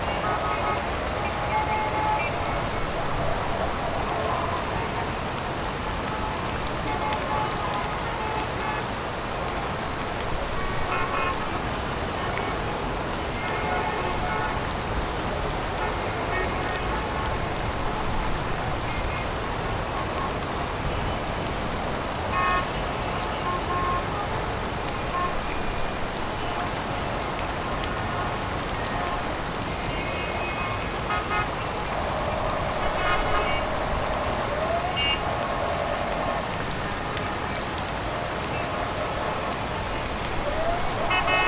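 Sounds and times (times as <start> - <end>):
heavy rainstorm in a city: 0.0 - 41.4.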